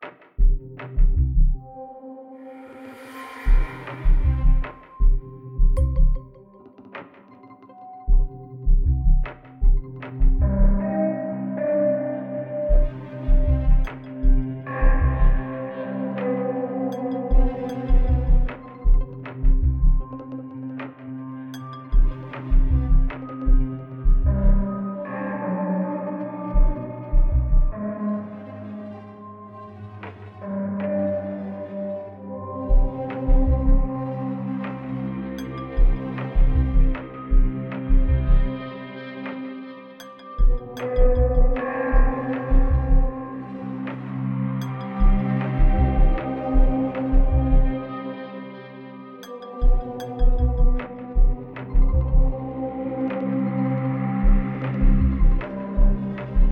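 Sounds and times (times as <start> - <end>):
suspense music loop: 0.0 - 2.2, 2.8 - 56.5.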